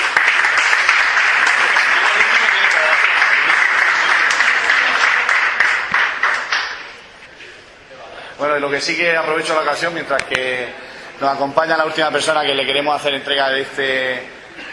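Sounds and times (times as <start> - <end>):
audience applause: 0.0 - 7.0
speech: 8.6 - 14.4.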